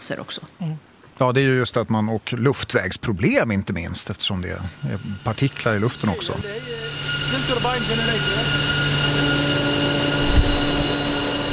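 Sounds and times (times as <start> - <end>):
speech: 0.0 - 9.4
hum of electric generators: 3.8 - 11.5.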